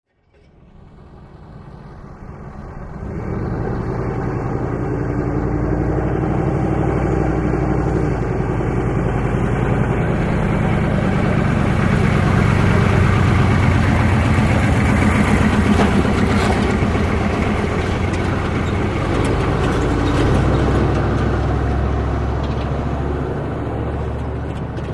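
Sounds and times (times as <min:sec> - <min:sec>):
Humvee passing very slowly: 0:00.2 - 0:24.9.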